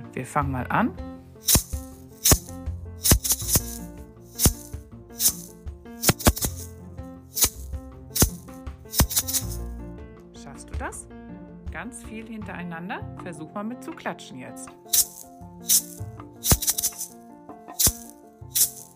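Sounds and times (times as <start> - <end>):
speech: 0.2 - 1.6, 12.2 - 15.0
small rattle shaking a rhythmic pattern: 1.4 - 9.7, 14.9 - 18.9.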